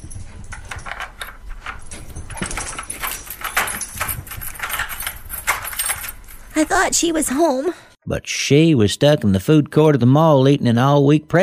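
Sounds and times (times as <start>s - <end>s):
keys jangling and scraping in a door lock: 0.0s - 7.2s
speech: 6.6s - 11.4s.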